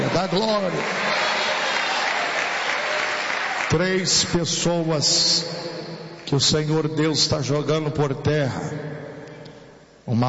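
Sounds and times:
church congregation applauding in praise of Jesus: 0.0 - 4.4
speech: 0.1 - 1.2, 3.7 - 5.7, 6.3 - 8.9, 10.1 - 10.2.

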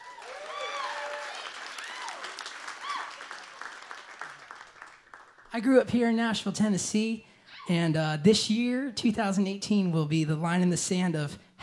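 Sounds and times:
whoops and cheers: 0.0 - 3.6
audience applause: 0.0 - 5.5
speech: 5.5 - 11.5.

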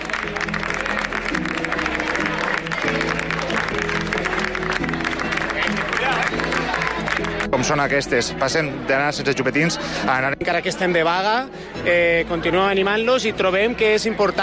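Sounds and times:
teachers applauding students: 0.0 - 7.8
speech: 7.7 - 14.4.

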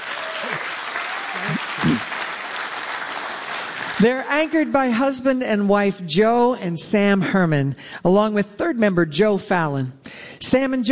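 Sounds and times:
audience applauding: 0.0 - 4.5
speech: 4.0 - 10.9.

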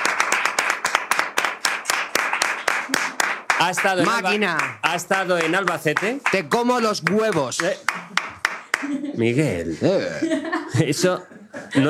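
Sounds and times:
small group applauding a returning guest: 0.0 - 9.1
speech: 3.6 - 8.2, 8.8 - 11.8
laughter: 7.7 - 11.8.

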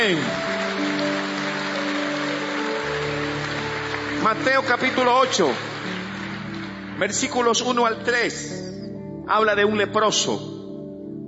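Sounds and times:
speech: 0.0 - 0.5, 4.2 - 6.0, 7.0 - 8.6, 9.3 - 10.5
audience applause: 0.0 - 8.1.

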